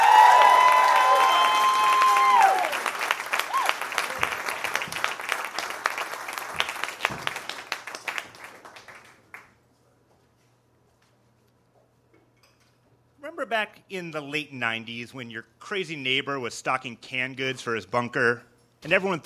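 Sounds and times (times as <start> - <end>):
audience applauding and cheering to welcome a guest: 0.0 - 9.5
speech: 13.9 - 19.2.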